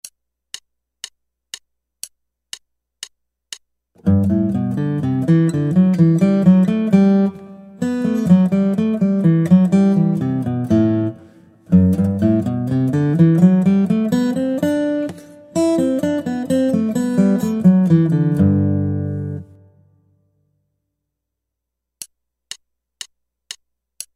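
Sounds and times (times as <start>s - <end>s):
guitar: 4.0s - 19.9s.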